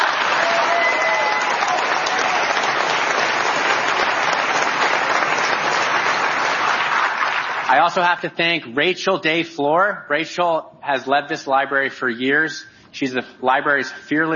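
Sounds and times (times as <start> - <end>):
audience applause: 0.0 - 7.9
speech: 7.7 - 14.3.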